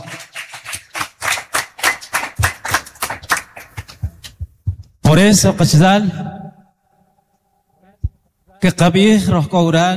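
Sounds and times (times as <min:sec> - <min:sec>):
audience applause: 0:00.0 - 0:03.9
speech: 0:05.1 - 0:06.3, 0:08.6 - 0:09.9.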